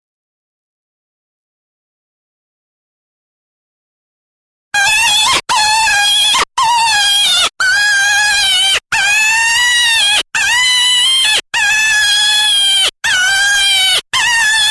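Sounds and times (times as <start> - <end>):
jackrabbit distress screams: 4.8 - 14.7.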